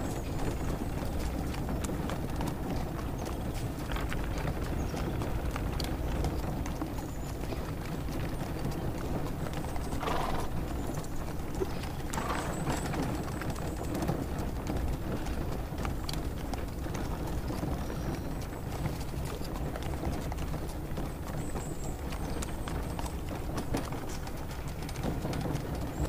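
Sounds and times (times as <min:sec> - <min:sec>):
carriage horses trotting through a spring forest: 0:00.0 - 0:26.0.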